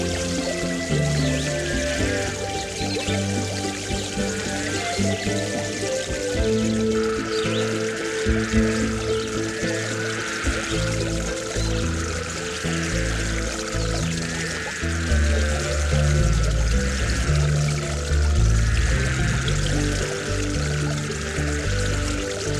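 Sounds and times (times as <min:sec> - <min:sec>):
backyard stream rippling: 0:00.0 - 0:22.5
music: 0:00.0 - 0:22.5.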